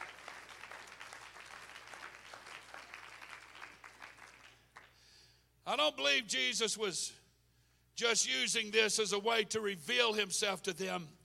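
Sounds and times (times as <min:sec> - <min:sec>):
audience clapping hands: 0:00.0 - 0:05.1
speech: 0:05.7 - 0:07.2, 0:08.0 - 0:11.2.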